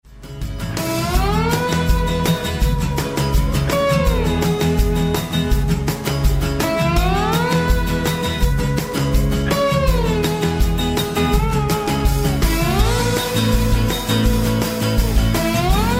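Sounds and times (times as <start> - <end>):
country Americana music: 0.1 - 15.9.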